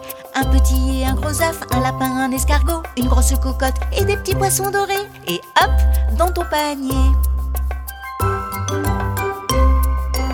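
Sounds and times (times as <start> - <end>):
speech: 0.4 - 7.3
bells ringing: 8.2 - 10.3.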